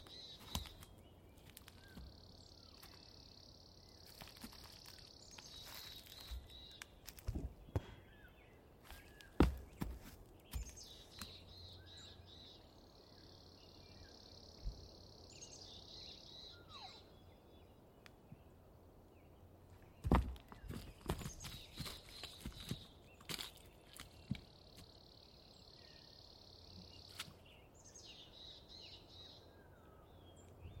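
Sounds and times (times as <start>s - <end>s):
birds singing in a dawn chorus: 0.0s - 30.7s.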